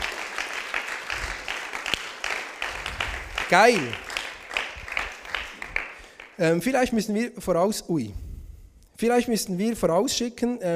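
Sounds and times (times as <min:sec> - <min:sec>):
applause: 0:00.0 - 0:06.5
speech: 0:03.5 - 0:04.0, 0:06.4 - 0:08.2, 0:09.0 - 0:10.7.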